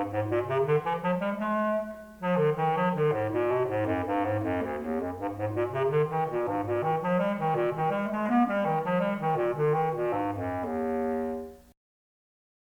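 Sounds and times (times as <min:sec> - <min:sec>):
bass clarinet: 0:00.0 - 0:11.7.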